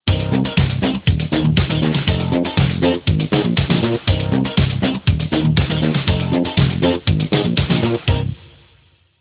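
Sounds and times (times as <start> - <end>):
instrumental disco ringtone: 0.1 - 8.4.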